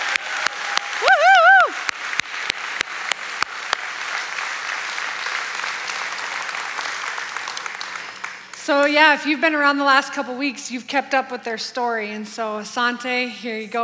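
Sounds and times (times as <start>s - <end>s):
audience round of applause: 0.0s - 8.6s
speech: 8.7s - 13.8s.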